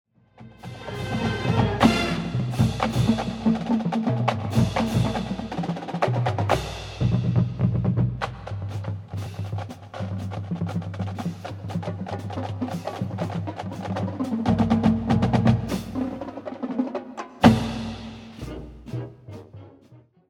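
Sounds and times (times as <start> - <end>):
drums: 0.3 - 19.6.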